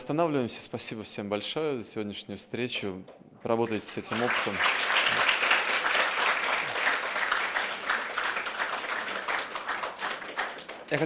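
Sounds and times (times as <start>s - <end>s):
speech: 0.1s - 4.9s
audience applause: 4.0s - 11.0s.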